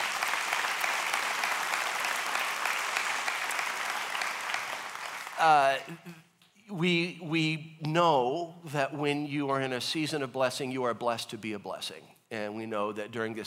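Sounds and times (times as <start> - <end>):
audience applause: 0.0 - 5.7
speech: 5.4 - 13.4.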